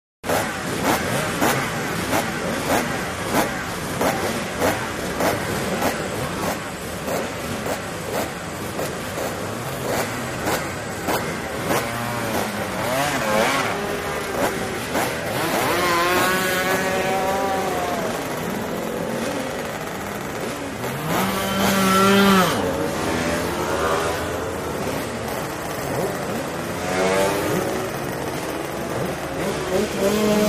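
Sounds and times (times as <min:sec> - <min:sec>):
motorcycles road racing: 0:00.2 - 0:30.4.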